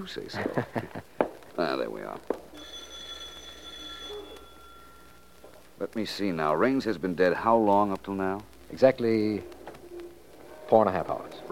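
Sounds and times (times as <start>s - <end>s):
speech: 0.0s - 2.8s, 5.8s - 9.6s, 10.7s - 11.5s
low hum: 0.0s - 11.5s
bell ringing: 2.5s - 5.6s.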